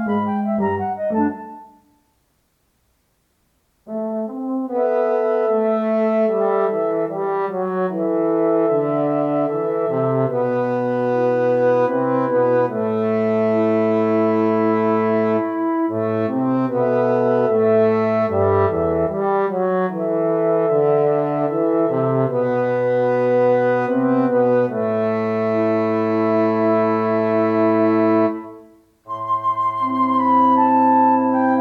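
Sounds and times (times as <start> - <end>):
wind instruments without oboe: 0.0 - 2.0, 3.9 - 31.5.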